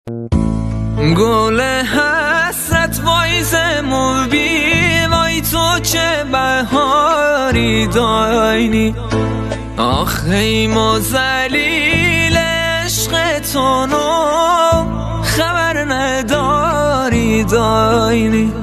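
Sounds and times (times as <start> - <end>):
music: 0.1 - 18.6.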